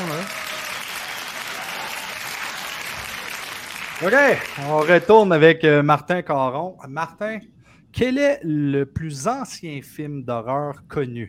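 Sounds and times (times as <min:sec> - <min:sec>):
audience applause: 0:00.0 - 0:05.3
speech: 0:04.0 - 0:11.2.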